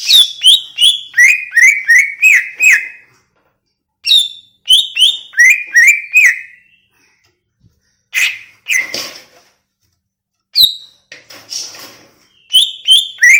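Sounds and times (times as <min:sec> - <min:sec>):
greater green leafbird whistling song: 0:00.0 - 0:03.0, 0:04.0 - 0:07.0, 0:08.1 - 0:09.0, 0:10.6 - 0:11.0, 0:12.3 - 0:13.3.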